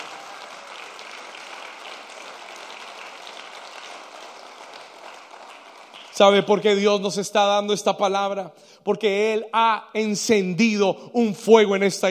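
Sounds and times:
audience applauding: 0.0 - 6.8
speech: 6.2 - 12.0.

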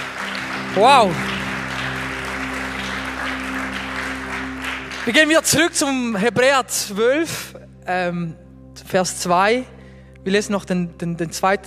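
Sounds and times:
applause: 0.0 - 6.5
speech: 0.7 - 1.3, 5.0 - 11.6.

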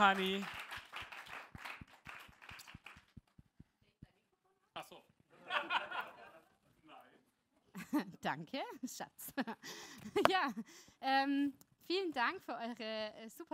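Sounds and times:
speech: 0.0 - 0.6, 7.9 - 13.5
audience applause: 0.0 - 3.2
laughter: 5.3 - 6.7.

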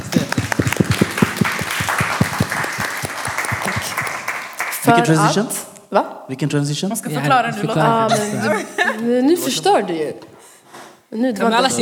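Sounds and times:
people clapping hands: 0.0 - 5.3
speech: 4.9 - 10.3, 11.1 - 11.7
laughter: 7.4 - 9.3.

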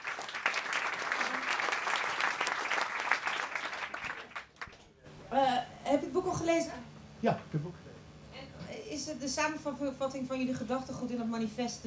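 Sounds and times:
audience applause: 0.0 - 4.9
speech: 5.3 - 7.9, 9.0 - 11.8.

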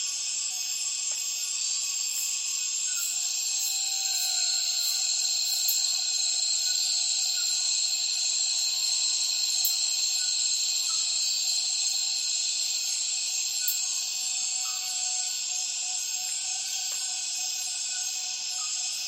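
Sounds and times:
cicadas chorus in the Borneo rainforest at dusk: 0.0 - 19.0
faint lower insect chirps: 0.0 - 19.0.

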